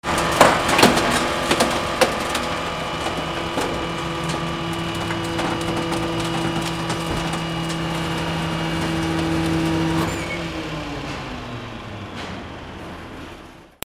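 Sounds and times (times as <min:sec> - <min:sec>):
vehicles: 0:00.0 - 0:13.8.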